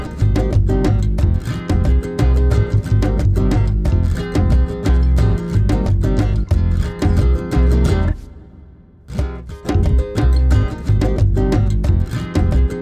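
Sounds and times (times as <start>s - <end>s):
flamenco music: 0.0s - 12.8s.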